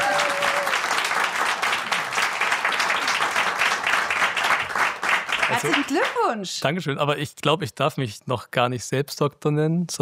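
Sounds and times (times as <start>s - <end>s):
live audience applause: 0.0s - 6.3s
speech: 5.6s - 10.0s.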